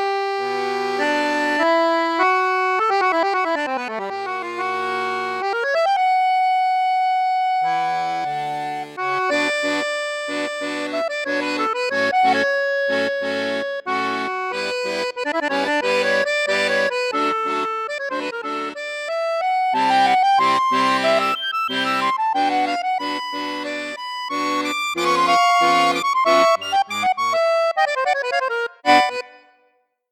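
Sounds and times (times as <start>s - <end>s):
accordion playing with bassoon flute register: 0.0s - 29.7s.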